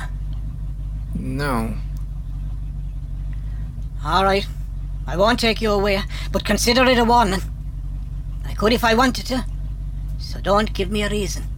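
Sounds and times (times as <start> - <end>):
parked car engine idling: 0.0 - 11.5
speech: 1.2 - 1.9, 4.0 - 7.5, 8.6 - 9.5, 10.2 - 11.5.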